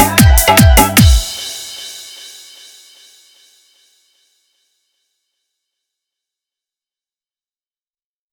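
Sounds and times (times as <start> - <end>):
patriotic song in hard bass mix: 0.0 - 2.2.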